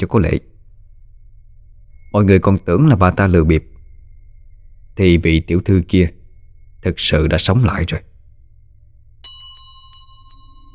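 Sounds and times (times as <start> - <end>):
speech: 0.0 - 0.5, 2.1 - 3.7, 5.0 - 6.2, 6.8 - 8.1
low steady rumble: 0.0 - 9.2
brass bell jingling: 9.2 - 10.7.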